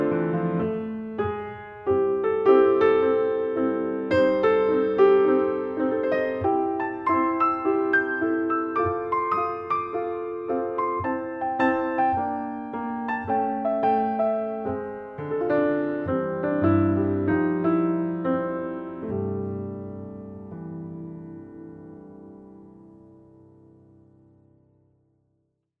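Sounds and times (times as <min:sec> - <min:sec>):
American chanson on piano: 0:00.0 - 0:25.0.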